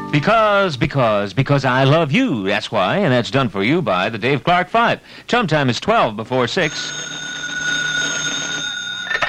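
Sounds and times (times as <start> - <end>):
speech: 0.1 - 7.3
telephone ringing: 6.6 - 9.2.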